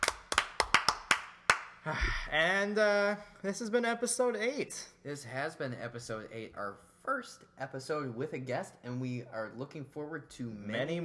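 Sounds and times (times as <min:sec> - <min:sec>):
applause: 0:00.0 - 0:01.7
speech: 0:01.8 - 0:11.0.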